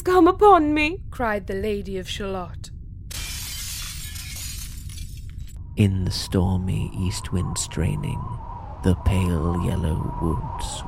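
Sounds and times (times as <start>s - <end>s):
speech: 0.2s - 2.7s, 5.8s - 10.8s
mirror cracking: 3.1s - 5.6s.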